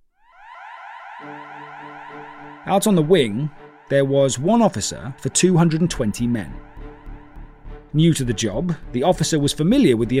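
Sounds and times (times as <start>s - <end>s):
prison emergency cell bell ringing: 0.3s - 7.6s
speech: 1.2s - 6.7s, 7.9s - 10.1s.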